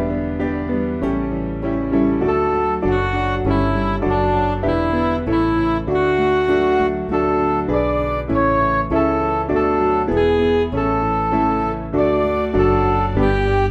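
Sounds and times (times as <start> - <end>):
MIDI music: 0.0 - 13.6.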